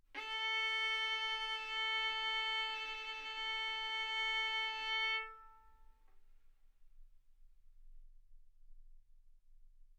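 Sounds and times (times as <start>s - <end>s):
violin bowed arco notes: 0.2s - 5.8s.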